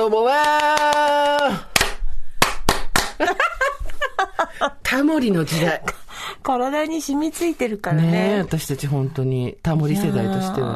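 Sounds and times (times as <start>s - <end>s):
speech: 0.0s - 1.0s, 4.6s - 10.7s
rhythmic hand clapping in the Waratte Iitomo pattern: 0.3s - 3.5s.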